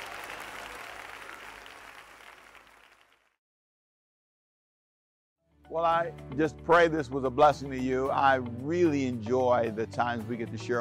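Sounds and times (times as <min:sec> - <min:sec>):
audience clapping: 0:00.0 - 0:03.4
speech: 0:05.7 - 0:10.7.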